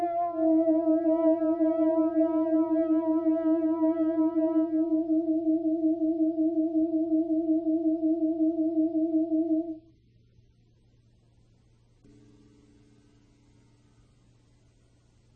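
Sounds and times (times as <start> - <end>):
DX7 synthesizer singing voice: 0.0 - 9.8.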